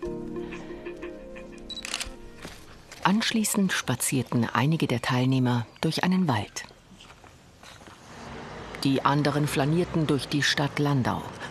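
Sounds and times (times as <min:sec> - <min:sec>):
camera shutter clicks taking a photo of a face: 0:01.7 - 0:02.2
speech: 0:03.0 - 0:06.7, 0:08.8 - 0:11.5.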